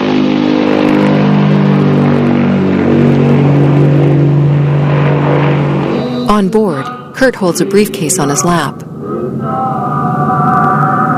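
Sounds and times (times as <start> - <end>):
plane lifting off: 0.0 - 11.1
speech: 6.5 - 9.9.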